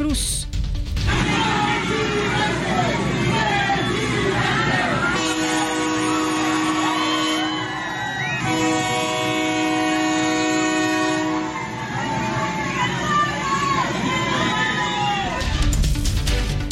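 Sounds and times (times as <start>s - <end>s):
crowd noise and voices at Coatzacoalcos: 0.0s - 16.6s
speech: 0.1s - 0.4s
Interoceanic Train of the Isthmus of Tehuantepec horn blast at Coatzacoalcos: 5.1s - 7.7s, 8.4s - 12.6s.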